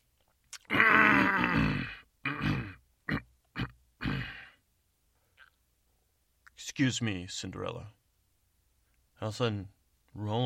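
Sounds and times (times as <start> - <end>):
man clearing his throat: 0.7 - 4.6
speech: 6.8 - 8.0, 9.2 - 10.4.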